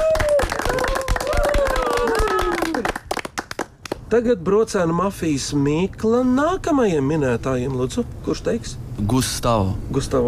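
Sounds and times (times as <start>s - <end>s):
applause and clapping: 0.0s - 4.0s
speech: 4.1s - 10.2s.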